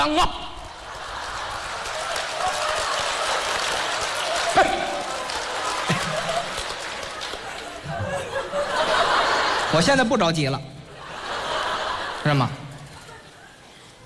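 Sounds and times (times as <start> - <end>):
speech: 0.0 - 0.4, 9.8 - 10.7, 12.2 - 12.6
crowd laughing: 0.6 - 14.0
crowd clapping: 0.7 - 9.7.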